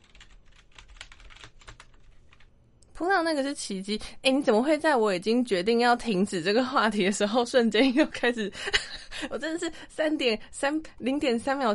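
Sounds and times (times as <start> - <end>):
rapid typing on a computer keyboard: 0.0 - 2.5
speech: 3.0 - 11.7.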